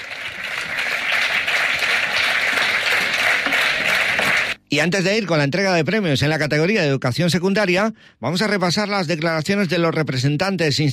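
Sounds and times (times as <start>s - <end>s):
audience applause: 0.0s - 4.6s
speech: 4.8s - 10.9s.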